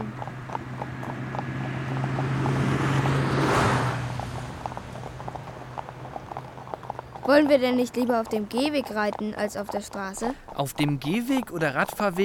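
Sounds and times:
car passing by: 0.0s - 6.3s
speech: 7.3s - 12.2s.

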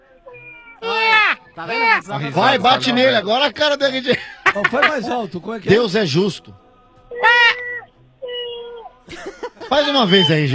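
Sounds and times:
person imitating a cat in heat: 0.8s - 2.0s, 7.1s - 7.8s
laughter: 0.8s - 5.8s, 9.0s - 10.5s
speech: 1.6s - 7.3s, 9.2s - 10.5s.

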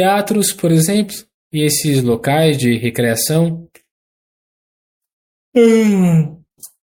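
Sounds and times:
speech: 0.0s - 3.8s, 5.5s - 6.7s
wet, happy yawn: 5.6s - 6.5s.

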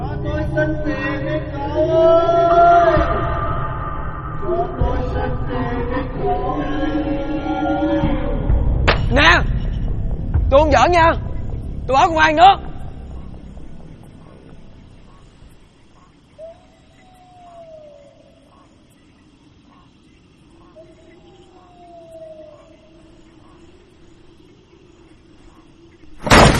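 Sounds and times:
strong wind gusting in: 0.0s - 26.5s
speech: 10.6s - 11.3s, 11.9s - 12.6s
door bursting open: 26.2s - 26.5s.

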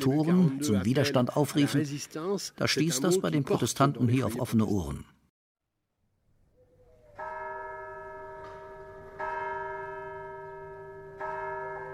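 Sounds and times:
speech: 0.0s - 5.2s
large church tower bell tolling: 7.2s - 11.9s.

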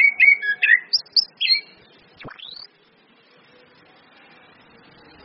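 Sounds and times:
Orange-headed thrush giving varied whistled phrases: 0.2s - 2.7s.

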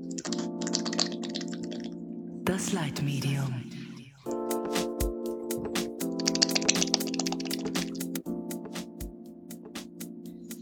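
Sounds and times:
typing on a computer keyboard: 0.1s - 1.9s, 4.3s - 9.9s
speech: 2.5s - 3.7s.

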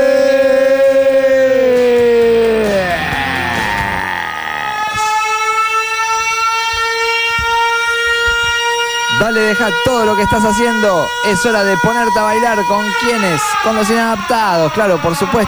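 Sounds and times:
siren wailing: 0.0s - 15.4s
speech: 9.5s - 15.4s.

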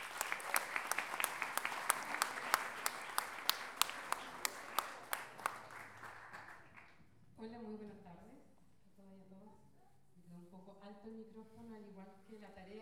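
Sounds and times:
audience applauding a guest speaker: 0.0s - 7.0s.

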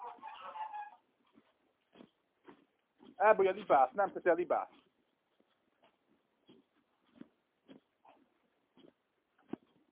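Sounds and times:
rooster clucking in a nest: 0.0s - 1.0s
speech: 3.2s - 4.8s.

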